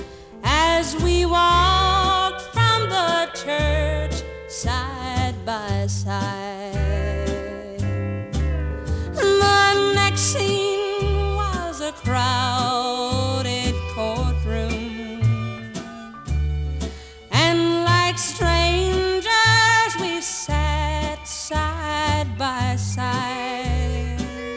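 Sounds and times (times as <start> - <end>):
country music: 0.0 - 24.5.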